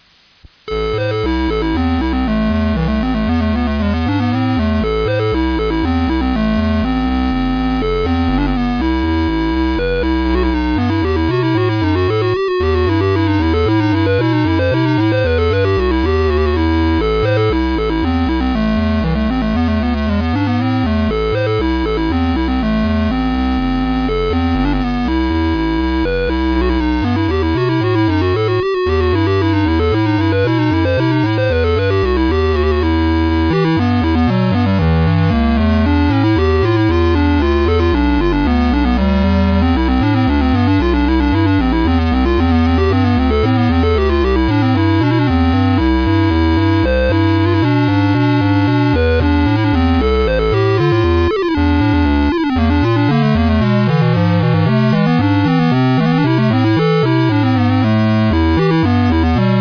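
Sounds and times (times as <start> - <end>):
baroque orchestral suite movement: 0.8 - 59.5.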